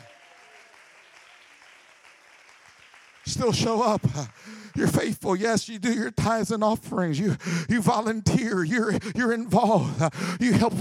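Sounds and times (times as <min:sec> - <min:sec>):
audience clapping hands: 0:00.0 - 0:06.1
speech: 0:03.3 - 0:10.7.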